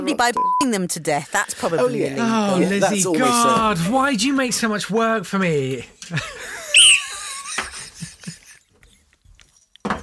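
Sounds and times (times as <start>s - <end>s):
speech: 0.0s - 6.6s
laughter: 6.0s - 8.7s
whistle used as editing cue: 6.7s - 7.2s.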